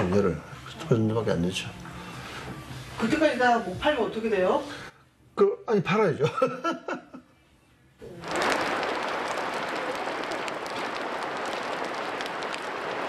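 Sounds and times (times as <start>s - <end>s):
speech: 0.0s - 1.9s, 3.0s - 7.1s
rain falling on greenhouse: 8.0s - 13.0s.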